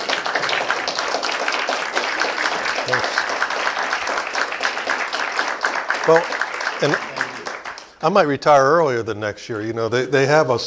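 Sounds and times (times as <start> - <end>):
audience applause: 0.0 - 8.1
speech: 6.1 - 7.1, 8.0 - 10.6.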